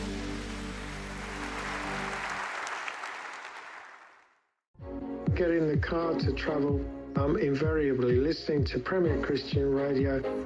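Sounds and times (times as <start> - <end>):
audience applauding: 0.0 - 4.4
speech: 5.4 - 10.4.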